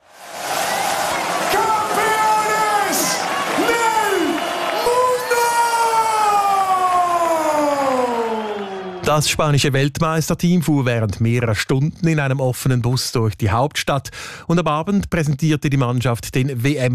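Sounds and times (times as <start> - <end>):
huge crowd in Madrid cheering football world champions: 0.0 - 9.8
speech: 9.1 - 16.9.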